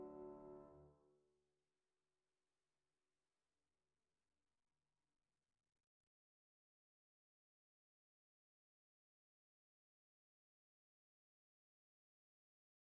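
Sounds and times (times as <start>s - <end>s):
piano quartet music: 0.0s - 0.8s.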